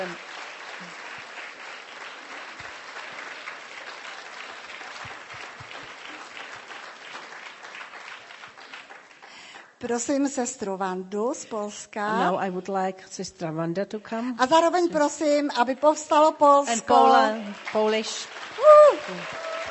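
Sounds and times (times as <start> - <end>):
audience applause: 0.0 - 9.7, 16.9 - 19.6
speech: 9.8 - 19.4.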